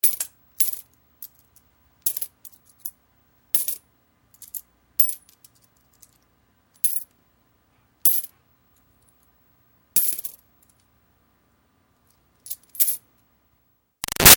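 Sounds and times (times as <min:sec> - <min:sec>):
single coins dropping on coins: 0:00.0 - 0:03.8, 0:04.4 - 0:06.2, 0:06.8 - 0:07.1, 0:08.1 - 0:08.3, 0:10.0 - 0:10.9, 0:12.4 - 0:13.1.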